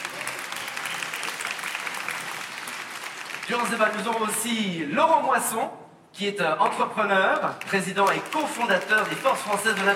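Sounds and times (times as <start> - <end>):
audience applause: 0.0 - 4.5, 7.6 - 9.9
speech: 3.5 - 9.9.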